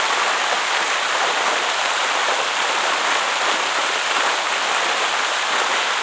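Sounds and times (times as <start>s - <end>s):
large fountain: 0.0s - 6.0s.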